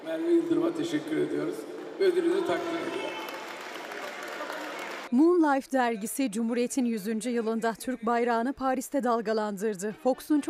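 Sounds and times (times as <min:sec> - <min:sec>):
speech: 0:00.1 - 0:03.2, 0:05.1 - 0:10.4
audience applause: 0:02.2 - 0:05.1.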